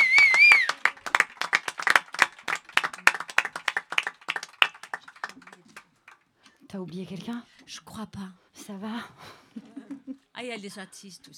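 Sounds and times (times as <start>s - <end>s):
audience applause: 0.0s - 5.9s
speech: 6.7s - 11.3s.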